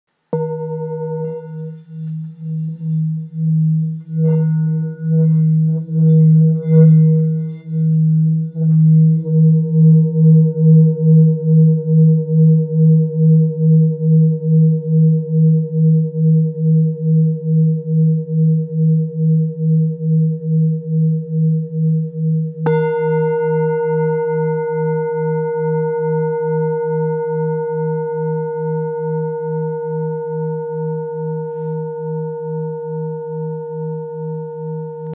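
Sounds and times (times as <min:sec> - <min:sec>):
Tibetan singing bowl 1.6-1.7 kg: 0:00.3 - 0:35.1.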